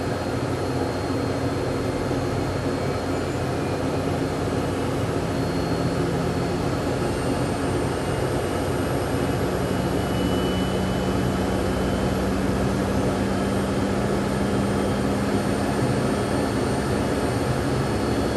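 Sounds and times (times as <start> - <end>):
airplane cockpit ambience during takeoff: 0.0 - 18.3.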